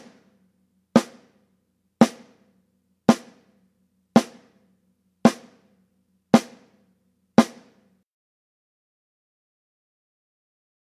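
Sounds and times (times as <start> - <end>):
drum roll: 1.0 - 1.4, 2.0 - 2.5, 3.1 - 3.6, 4.2 - 4.6, 5.3 - 5.7, 6.4 - 6.8, 7.4 - 7.8.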